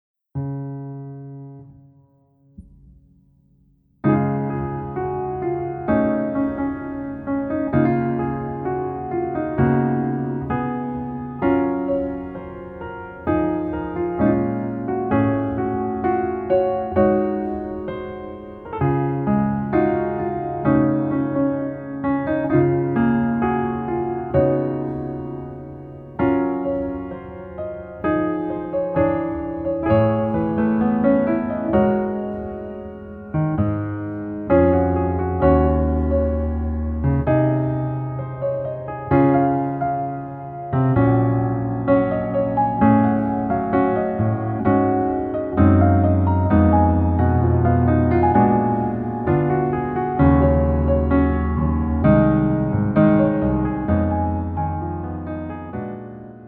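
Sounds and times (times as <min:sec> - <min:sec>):
piano melody instrumental: 0:00.4 - 0:56.4.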